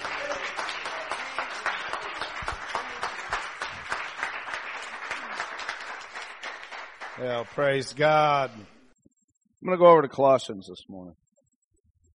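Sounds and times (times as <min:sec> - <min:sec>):
audience cheering: 0:00.0 - 0:08.1
speech: 0:07.2 - 0:08.8, 0:09.6 - 0:11.2.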